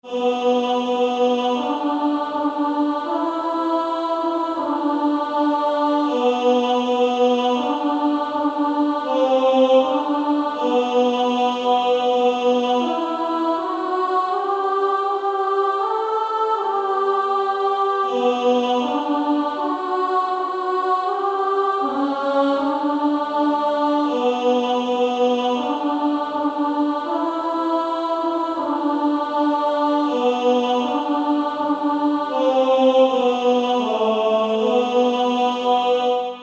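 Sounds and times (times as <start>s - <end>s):
female choir singing: 0.0s - 36.4s.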